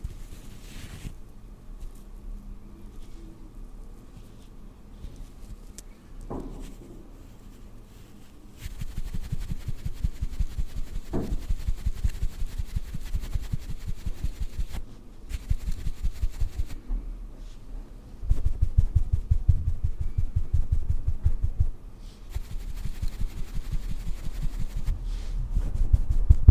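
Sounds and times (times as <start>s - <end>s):
soft rustling: 0.0s - 2.2s, 2.8s - 17.7s, 18.3s - 26.4s
makeup brushing and tapping strokes on a face: 8.6s - 16.8s, 22.3s - 24.9s.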